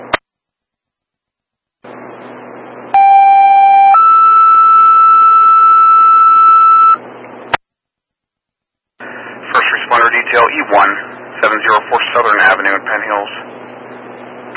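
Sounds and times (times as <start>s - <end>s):
loud two-tone radio dispatch paging alert: 3.0s - 7.0s
radio static hiss: 9.0s - 13.6s.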